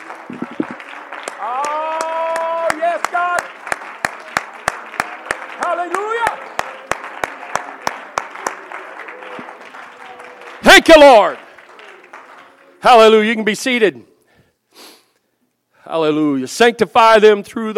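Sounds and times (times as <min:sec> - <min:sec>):
audience clapping hands in praise: 0:00.0 - 0:13.8
speech: 0:10.8 - 0:11.4, 0:12.8 - 0:14.1, 0:15.9 - 0:17.7.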